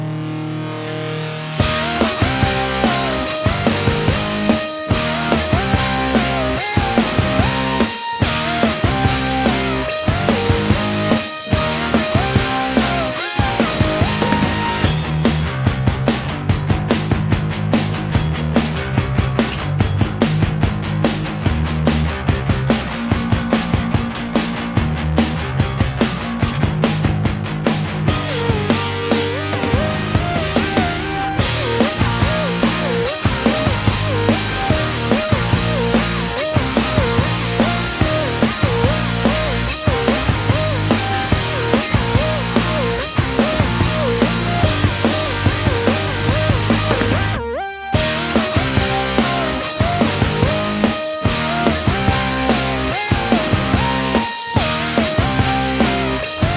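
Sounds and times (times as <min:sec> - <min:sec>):
pop punk instrumental: 0:00.2 - 0:56.5.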